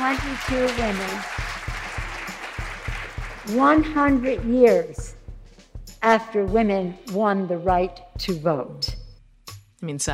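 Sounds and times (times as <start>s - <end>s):
audience applause at a government meeting: 0.0s - 4.3s
speech: 0.1s - 1.4s, 3.4s - 5.2s, 6.0s - 8.9s, 9.8s - 10.1s.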